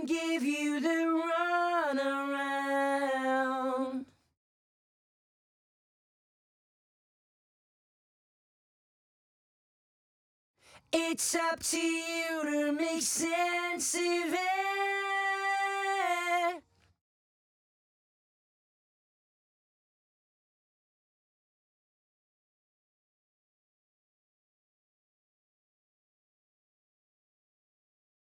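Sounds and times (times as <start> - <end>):
main vocals: 0.0 - 4.2, 10.7 - 16.7.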